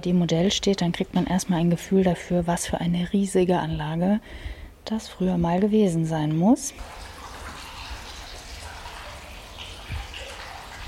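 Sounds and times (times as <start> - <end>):
speech: 0.0 - 7.0
water bubbling from a fountain in an old ornamental basin: 6.8 - 10.8.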